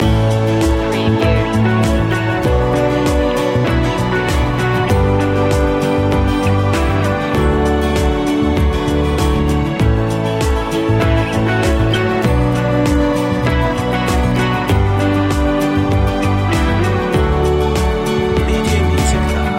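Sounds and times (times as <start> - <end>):
dreamy music loop: 0.0 - 19.5.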